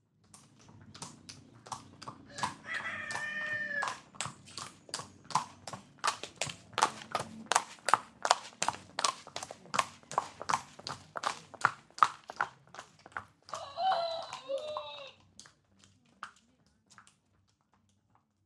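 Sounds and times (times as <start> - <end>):
wild west sounds: 0.4 - 11.5, 13.3 - 15.3.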